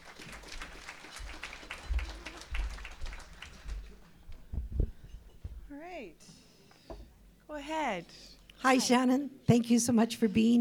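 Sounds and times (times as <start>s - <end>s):
audience applauding to welcome a minister to the stage: 0.0s - 4.4s
low thumps: 3.8s - 5.8s
speech: 6.0s - 6.4s, 7.5s - 10.6s.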